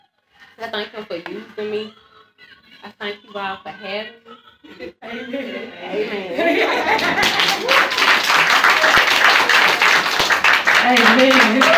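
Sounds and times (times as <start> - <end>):
speech: 0.6 - 2.0, 3.0 - 7.9, 10.8 - 11.7
laughter: 4.2 - 11.7
audience clapping hands in praise: 6.6 - 11.7.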